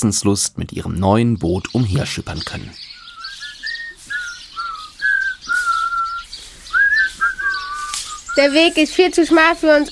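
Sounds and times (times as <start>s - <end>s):
speech: 0.0s - 2.9s, 8.4s - 9.9s
person whistling a tune while walking: 3.2s - 8.5s.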